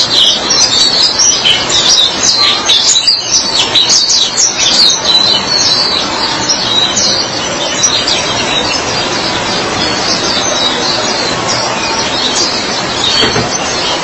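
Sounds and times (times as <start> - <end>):
white-eye singing a high jingle: 0.0 - 14.0.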